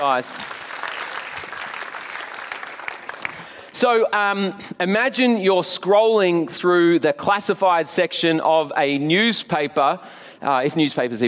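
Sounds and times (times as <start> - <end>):
speech: 0.0 - 0.6, 3.8 - 11.2
crowd applauding: 0.0 - 3.7.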